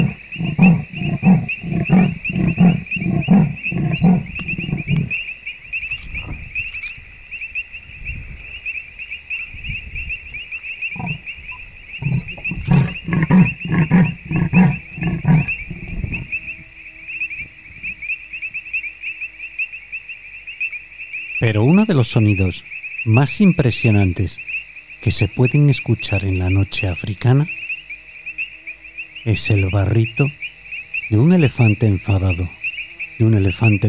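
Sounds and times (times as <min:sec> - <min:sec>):
leopard roaring in the African night: 0:00.0 - 0:05.2, 0:10.9 - 0:16.4
speech: 0:21.5 - 0:27.6, 0:29.2 - 0:30.4, 0:31.1 - 0:32.6, 0:33.2 - 0:33.8.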